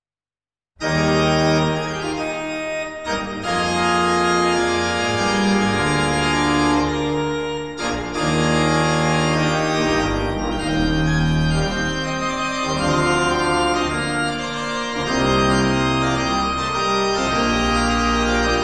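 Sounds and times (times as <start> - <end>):
prelude and fugue: 0.8 - 18.6.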